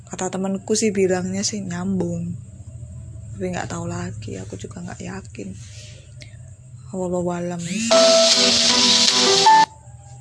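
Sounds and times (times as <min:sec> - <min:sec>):
speech: 0:00.1 - 0:02.5, 0:03.4 - 0:06.0, 0:06.9 - 0:09.0
alarm going off: 0:07.6 - 0:09.8.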